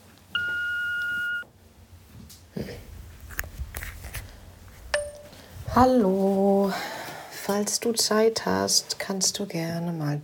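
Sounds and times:
voicemail beep tone: 0.4s - 1.4s
speech: 5.8s - 6.9s, 7.5s - 10.2s.

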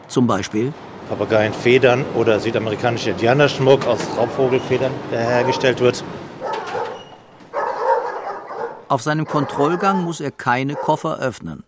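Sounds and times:
speech: 0.1s - 6.3s, 8.9s - 11.6s
German shepherd dog barking: 4.1s - 11.1s.

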